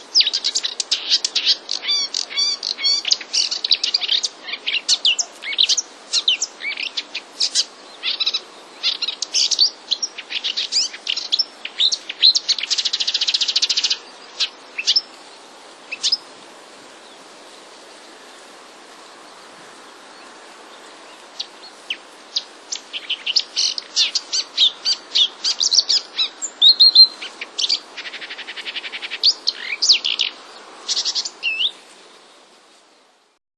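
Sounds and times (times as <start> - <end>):
male marsh warbler singing: 0.0 - 16.3, 19.3 - 31.9.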